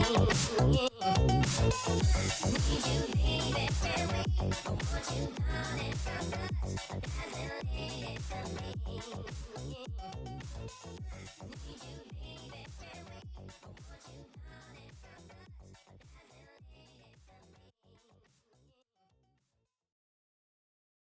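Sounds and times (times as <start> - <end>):
funk music: 0.0 - 7.5.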